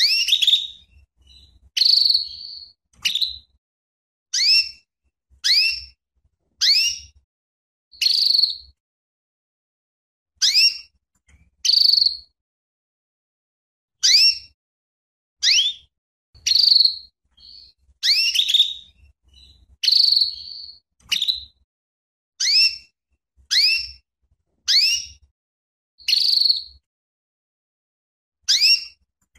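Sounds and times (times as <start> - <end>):
female canary calling with sharp sweeping chirps and buzzy notes: 0.0 - 3.6, 4.3 - 6.0, 6.6 - 7.2, 7.9 - 8.8, 10.4 - 12.4, 14.0 - 14.6, 15.4 - 21.6, 22.4 - 25.3, 26.0 - 26.9, 28.4 - 29.3.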